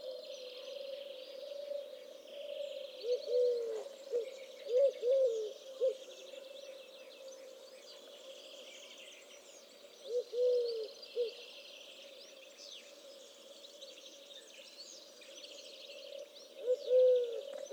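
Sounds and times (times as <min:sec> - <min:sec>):
faint insect hiss: 0:00.0 - 0:17.7
Eurasian collared dove cooing: 0:03.0 - 0:06.0, 0:10.1 - 0:11.4, 0:16.6 - 0:17.7.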